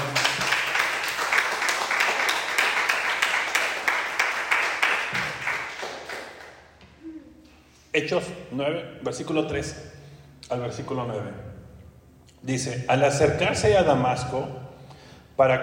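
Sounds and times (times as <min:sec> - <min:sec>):
crowd applauding: 0:00.0 - 0:06.6
speech: 0:08.0 - 0:11.5, 0:12.4 - 0:14.6, 0:15.4 - 0:15.6.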